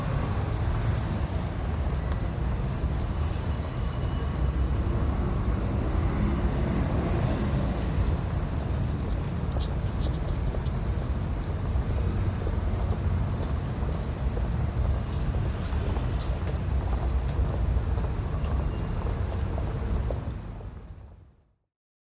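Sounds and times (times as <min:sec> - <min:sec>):
rush hour ambience at London Bridge: 0:00.0 - 0:21.6.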